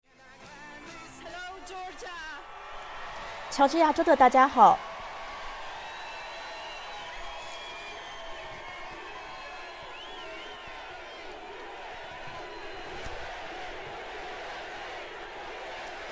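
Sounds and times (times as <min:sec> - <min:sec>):
crowd chanting at rally: 0:01.3 - 0:16.0
speech: 0:03.6 - 0:04.9.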